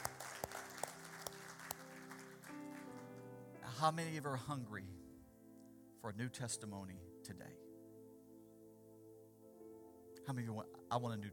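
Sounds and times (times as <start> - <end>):
audience hand claps: 0.0 - 3.2
speech: 3.8 - 5.0, 6.0 - 7.7, 10.3 - 11.3.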